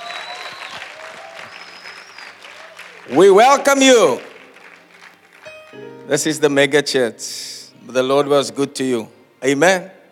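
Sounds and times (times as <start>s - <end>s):
faint cheers: 0.0s - 3.2s
audience applauding: 0.0s - 5.8s
speech: 3.1s - 4.3s, 6.1s - 10.0s.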